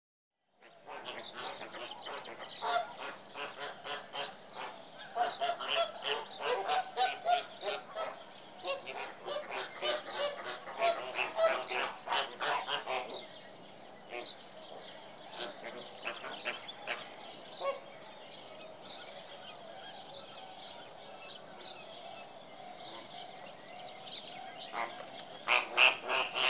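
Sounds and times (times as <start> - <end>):
flamingo flock giving rapid honking gabbling calls: 0.9 - 13.4, 15.3 - 17.9, 24.7 - 26.4.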